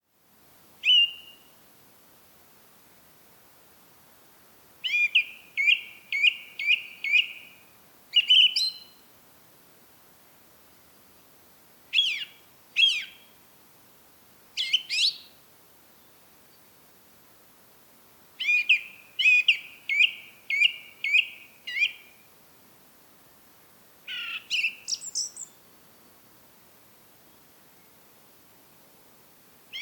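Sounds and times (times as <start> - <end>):
song thrush song: 0.8 - 1.5, 4.8 - 7.6, 8.2 - 9.0, 11.9 - 13.2, 14.6 - 15.3, 18.4 - 22.2, 24.1 - 25.6.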